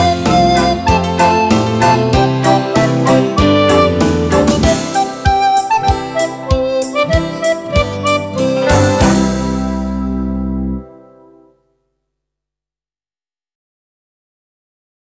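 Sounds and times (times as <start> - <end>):
folk tune played on a recorder: 0.0 - 11.5.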